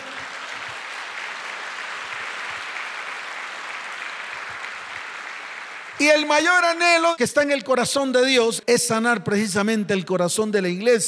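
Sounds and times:
audience applause: 0:00.0 - 0:06.7
speech: 0:06.0 - 0:11.0.

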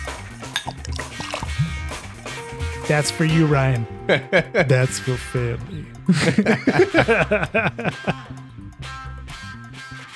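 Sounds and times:
beer pouring into a glass: 0:00.4 - 0:02.0
speech: 0:02.9 - 0:08.4
laughter: 0:04.1 - 0:08.4.

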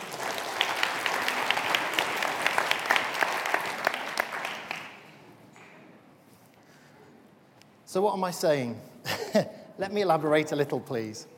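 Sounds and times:
audience applause: 0:00.0 - 0:05.2
speech: 0:07.9 - 0:11.3.

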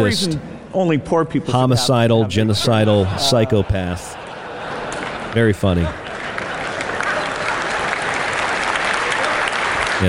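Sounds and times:
speech: 0:00.0 - 0:04.2, 0:05.3 - 0:06.0
laughter: 0:01.6 - 0:08.4
audience clapping: 0:04.6 - 0:10.0.

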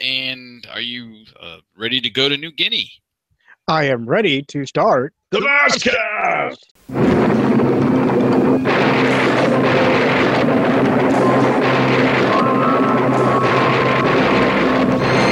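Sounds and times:
speech: 0:00.3 - 0:03.0, 0:03.7 - 0:07.8
thunderstorm with loud thunder crashes above a straw hut: 0:06.9 - 0:15.2.

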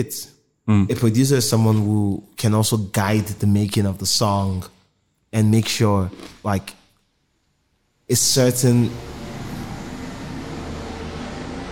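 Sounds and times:
speech: 0:00.0 - 0:06.8, 0:08.1 - 0:09.2
helicopter flying by: 0:08.6 - 0:11.7.

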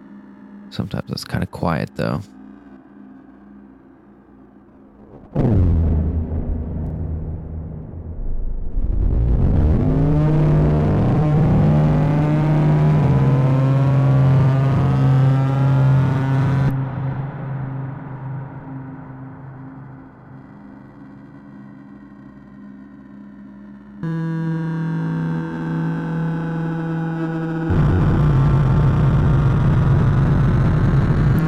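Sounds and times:
speech: 0:00.7 - 0:02.4
spooky stepped changing synthesizer drone: 0:01.8 - 0:31.4.

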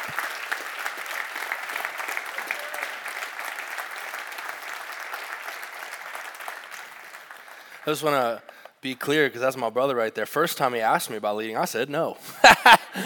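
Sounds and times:
audience applause: 0:00.0 - 0:08.6
speech: 0:07.9 - 0:13.0
laughter: 0:12.3 - 0:13.0.

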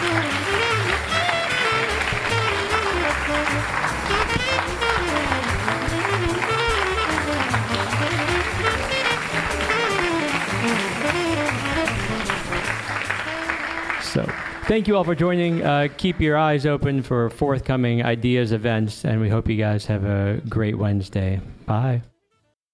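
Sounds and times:
crowd applauding for panelists: 0:00.0 - 0:16.5
music: 0:00.0 - 0:19.5, 0:21.3 - 0:22.6
speech: 0:14.7 - 0:22.1.

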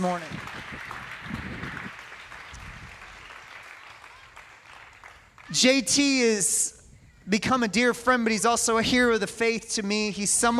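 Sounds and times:
speech: 0:00.0 - 0:00.5, 0:05.5 - 0:10.5
audience applauding: 0:00.0 - 0:06.2.

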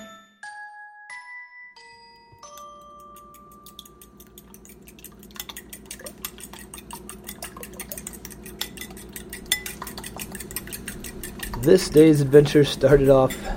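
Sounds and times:
utensils clinking and scraping on pans while cooking a breakfast burrito: 0:02.8 - 0:13.5
speech: 0:11.7 - 0:13.5.

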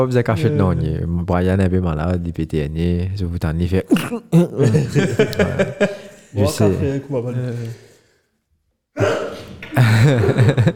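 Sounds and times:
speech: 0:00.0 - 0:07.9, 0:09.8 - 0:10.7
sneeze: 0:03.9 - 0:04.4, 0:09.0 - 0:09.8
laughter: 0:04.3 - 0:07.0, 0:09.7 - 0:10.7.

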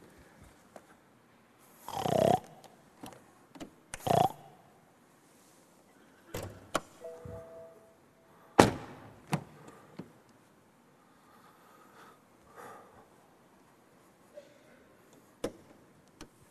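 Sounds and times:
pig grunting and snorting: 0:01.9 - 0:02.5, 0:04.0 - 0:04.5.

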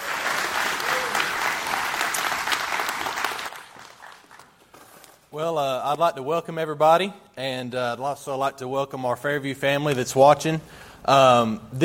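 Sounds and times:
church congregation applauding: 0:00.0 - 0:04.8
speech: 0:05.4 - 0:11.8.

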